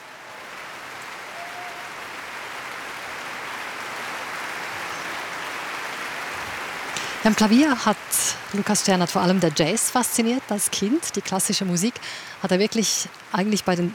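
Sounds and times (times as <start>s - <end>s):
orchestra applauding: 0.0s - 10.6s
speech: 7.2s - 13.9s.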